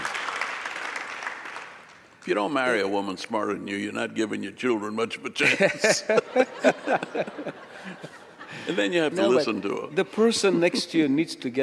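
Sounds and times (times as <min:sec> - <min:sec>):
audience applause: 0:00.0 - 0:02.1
speech: 0:02.3 - 0:11.6
laughter: 0:05.4 - 0:11.2.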